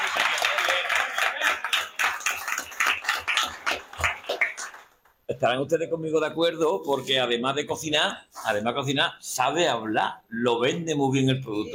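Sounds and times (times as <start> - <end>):
audience applause: 0.0 - 5.1
speech: 5.4 - 11.7.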